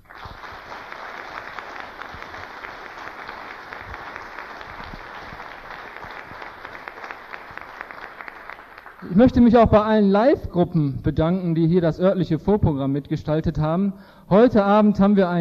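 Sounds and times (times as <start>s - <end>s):
audience applause for the technicians: 0.0s - 9.4s
speech: 9.1s - 15.3s.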